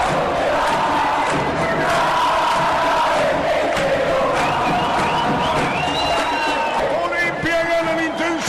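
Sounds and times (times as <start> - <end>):
stadium crowd roaring after a goal: 0.0 - 8.4
scattered whistles: 4.4 - 7.0, 7.7 - 8.4.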